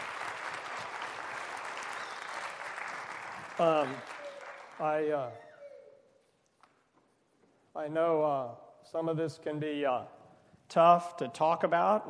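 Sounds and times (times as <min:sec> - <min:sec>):
audience applause: 0:00.0 - 0:05.2
speech: 0:03.6 - 0:04.2, 0:04.8 - 0:05.5, 0:07.8 - 0:12.0.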